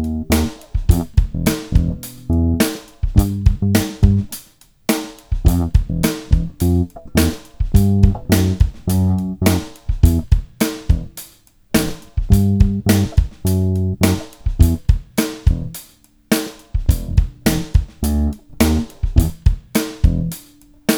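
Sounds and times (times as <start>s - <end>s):
bass sample: 0.0s - 4.3s, 5.4s - 11.1s, 11.8s - 14.9s, 15.5s - 15.8s, 16.9s - 19.4s, 20.0s - 20.4s.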